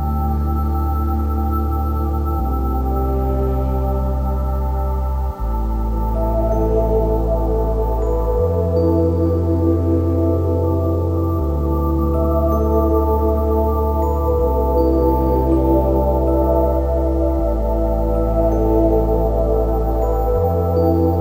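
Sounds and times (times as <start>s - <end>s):
ambient atmosphere: 0.0s - 21.1s.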